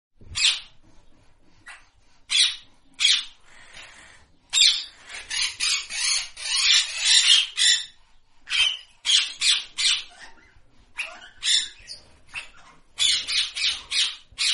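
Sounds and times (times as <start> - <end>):
parrots squawking: 0.3 - 0.8, 1.6 - 14.5.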